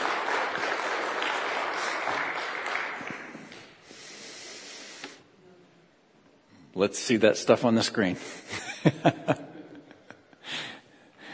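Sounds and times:
audience applause: 0.0 - 3.7
speech: 6.8 - 9.4.

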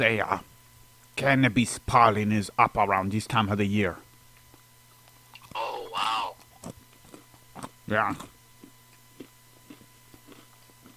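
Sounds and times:
speech: 0.0 - 0.5, 1.2 - 4.0, 7.9 - 8.3
person munching on pizza: 5.4 - 10.9.

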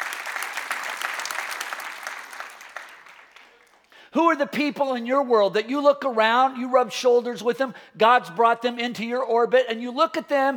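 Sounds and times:
audience clapping: 0.0 - 4.0
speech: 4.1 - 10.5.

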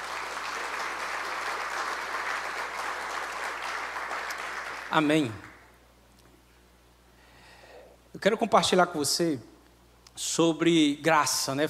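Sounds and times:
audience applause: 0.0 - 5.6
speech: 4.9 - 5.5, 8.2 - 9.5, 10.2 - 11.6.

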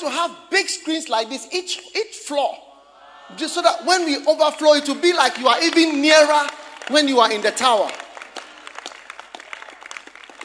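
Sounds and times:
speech: 0.0 - 2.7, 3.3 - 8.0
audience clapping: 3.6 - 10.4.

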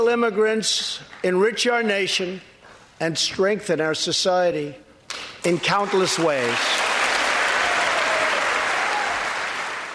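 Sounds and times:
speech: 0.0 - 6.8
audience applause: 5.6 - 9.9.

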